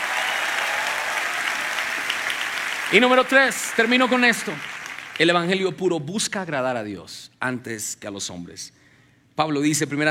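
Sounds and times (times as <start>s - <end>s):
audience applause: 0.0s - 5.5s
speech: 2.9s - 8.8s, 9.4s - 10.0s.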